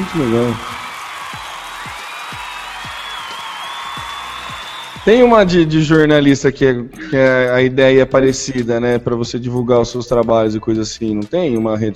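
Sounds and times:
speech: 0.0 - 0.7, 5.0 - 11.9
applause sound effect added in editing: 0.0 - 6.0.

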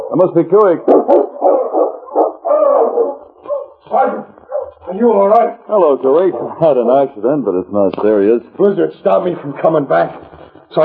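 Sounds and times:
speech: 0.1 - 1.2, 3.9 - 10.8
sled dog team yelping and howling: 0.8 - 5.1.

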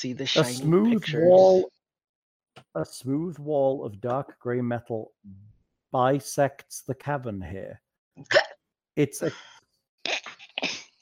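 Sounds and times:
speech: 0.0 - 1.8, 2.8 - 9.6
hiccup: 8.2 - 8.6.

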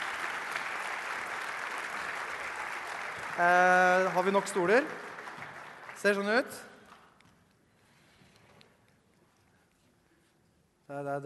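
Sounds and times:
audience clapping: 0.0 - 7.3
speech: 3.4 - 5.0, 6.0 - 6.7, 10.9 - 11.2.

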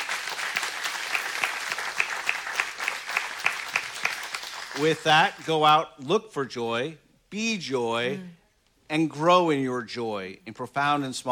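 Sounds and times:
audience clapping: 0.0 - 5.8
speech: 4.8 - 11.3.

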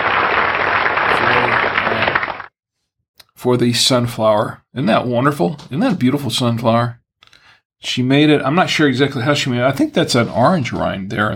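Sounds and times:
people clapping: 0.0 - 2.5
speech: 3.4 - 7.0, 7.8 - 11.3.

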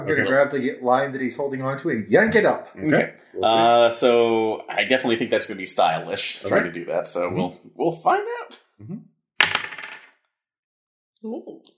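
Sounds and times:
murmured voice: 0.0 - 8.2
speech: 0.0 - 9.1, 11.2 - 11.7
dice rolling on table: 9.4 - 10.1.

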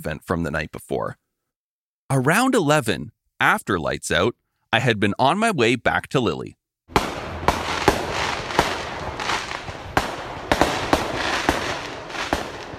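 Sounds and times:
speech: 0.0 - 1.2, 2.1 - 7.0
fireworks exploding: 6.9 - 12.7.

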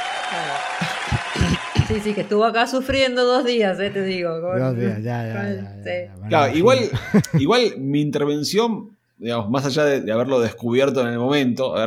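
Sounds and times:
applause: 0.0 - 2.6
speech: 0.3 - 11.8
laughter: 0.4 - 2.4, 6.5 - 7.7.

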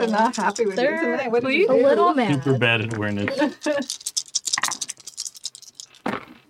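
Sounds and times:
dice tumbling and rattling across a hard surface: 0.0 - 1.1, 2.2 - 6.4
speech: 0.0 - 4.1.

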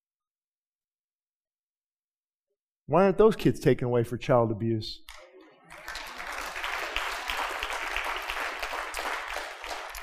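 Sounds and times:
speech: 2.9 - 5.2
audience applauding: 5.1 - 10.0.

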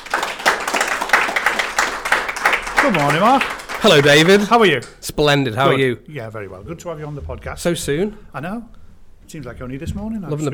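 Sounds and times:
applause, hand clapping: 0.0 - 5.4
speech: 2.8 - 10.5.

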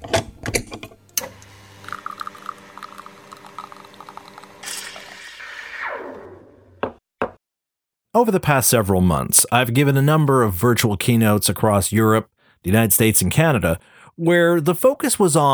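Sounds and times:
espresso machine brewing a shot: 1.2 - 6.2
speech: 8.2 - 15.5.

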